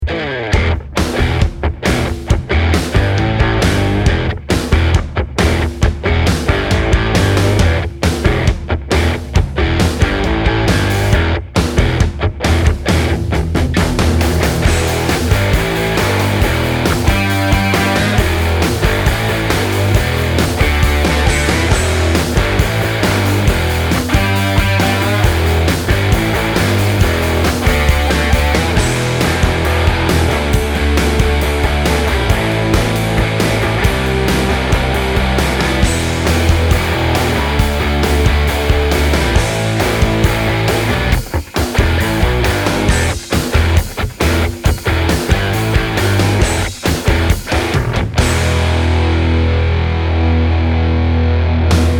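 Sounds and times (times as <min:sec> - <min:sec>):
rock music: 0:00.0 - 0:51.9.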